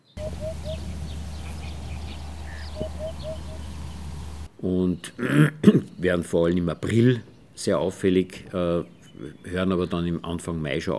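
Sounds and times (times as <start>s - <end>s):
Eurasian Hoopoe hooting calls: 0.0s - 4.5s
steady low hum: 0.0s - 4.5s
speech: 4.6s - 10.9s.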